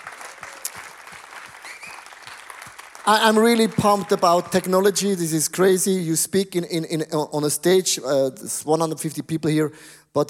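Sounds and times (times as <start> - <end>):
audience applause: 0.0 - 4.6
speech: 3.1 - 10.2.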